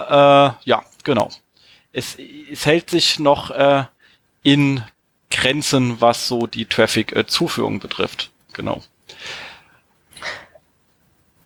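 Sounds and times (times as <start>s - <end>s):
speech: 0.1s - 9.4s
person breathing into a microphone: 9.1s - 10.4s.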